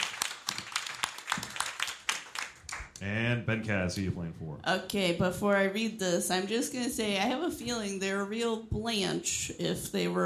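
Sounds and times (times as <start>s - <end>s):
audience applause: 0.0s - 3.0s
speech: 3.0s - 10.2s.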